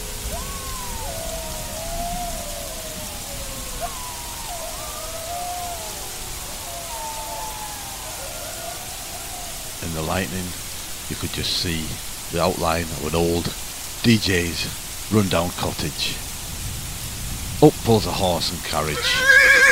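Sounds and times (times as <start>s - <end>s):
long wavering howls: 0.0s - 11.1s
heavy stormy rain: 0.0s - 19.7s
speech: 9.8s - 16.3s, 17.6s - 19.7s.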